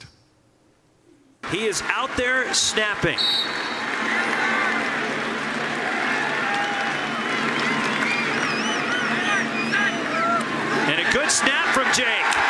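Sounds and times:
large stadium crowd cheering: 0:01.4 - 0:12.4
speech: 0:01.5 - 0:04.5, 0:11.2 - 0:12.4
shrill whistles: 0:03.0 - 0:04.9, 0:06.4 - 0:10.4.

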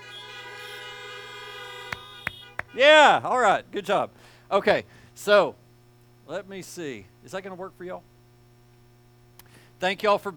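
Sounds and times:
car horns honking: 0:00.0 - 0:03.2
speech: 0:02.8 - 0:05.6, 0:06.3 - 0:08.1, 0:09.8 - 0:10.3.

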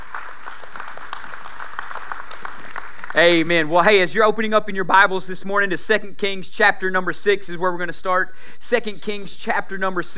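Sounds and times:
audience hand clapping: 0:00.0 - 0:04.1
speech: 0:03.1 - 0:10.1.

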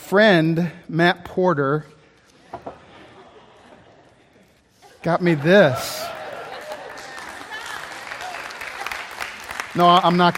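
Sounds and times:
speech: 0:00.1 - 0:02.0, 0:05.0 - 0:06.0, 0:09.8 - 0:10.3
laughter: 0:02.4 - 0:10.3
audience clapping and cheering: 0:05.1 - 0:10.3.

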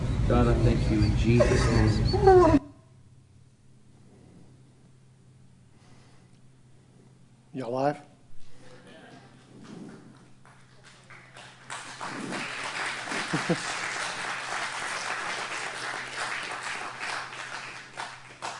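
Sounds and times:
speech: 0:00.3 - 0:02.6, 0:07.6 - 0:08.1, 0:13.5 - 0:13.8
laughter: 0:00.9 - 0:02.6, 0:12.2 - 0:14.8
audience applause: 0:10.4 - 0:18.5.

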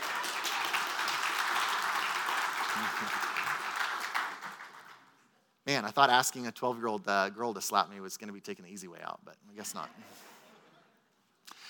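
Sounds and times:
crowd applause: 0:00.0 - 0:05.1
speech: 0:02.8 - 0:03.3, 0:05.7 - 0:10.3.

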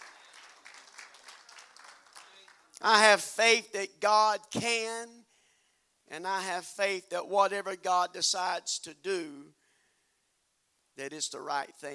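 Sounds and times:
crowd clapping: 0:00.0 - 0:02.8
speech: 0:02.8 - 0:05.2, 0:06.1 - 0:09.6, 0:11.0 - 0:11.9.

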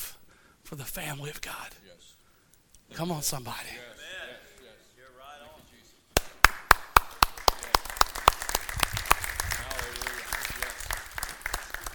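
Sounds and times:
speech: 0:00.7 - 0:02.2, 0:02.9 - 0:05.2
audience applause: 0:06.4 - 0:11.9.

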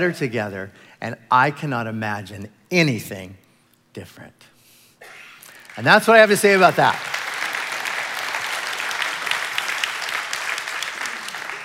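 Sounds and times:
speech: 0:00.0 - 0:03.4, 0:04.0 - 0:05.2, 0:05.8 - 0:07.1
audience clapping: 0:05.4 - 0:11.6.

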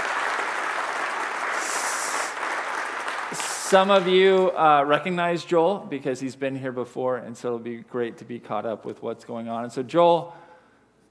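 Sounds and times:
audience applause: 0:00.0 - 0:04.6
speech: 0:03.7 - 0:10.4.

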